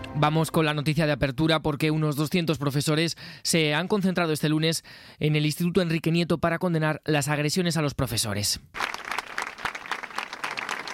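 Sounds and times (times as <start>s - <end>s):
speech: 0.2s - 9.1s
teachers clapping at a gathering outside a school in Melilla: 8.8s - 10.9s.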